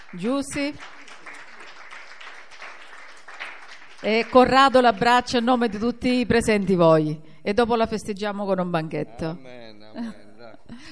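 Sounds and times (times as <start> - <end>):
applause at a Christian church gathering: 0.0 - 6.0
speech: 0.1 - 1.0, 4.0 - 10.9.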